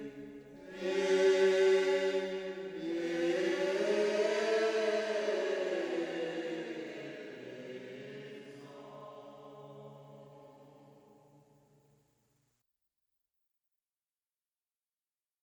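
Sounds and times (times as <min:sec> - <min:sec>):
Gregorian chant gospel choir: 0:00.0 - 0:11.2.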